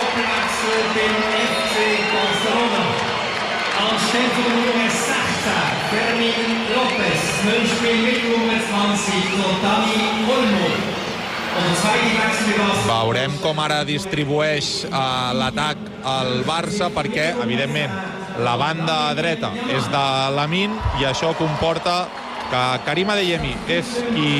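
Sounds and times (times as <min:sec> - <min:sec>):
stadium crowd ovation: 0:00.0 - 0:24.3
speech: 0:00.7 - 0:01.6, 0:03.8 - 0:10.9, 0:11.6 - 0:24.3.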